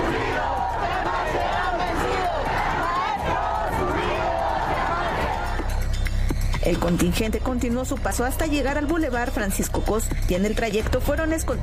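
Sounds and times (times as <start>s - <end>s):
protest march crowd chanting slogans: 0.0s - 5.8s
speech: 6.7s - 11.6s.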